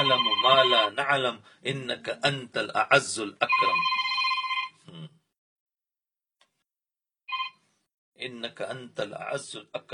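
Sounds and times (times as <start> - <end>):
telephone ringing: 0.0 - 0.9, 3.5 - 4.8, 7.3 - 7.6
speech: 0.1 - 4.0, 8.2 - 9.9.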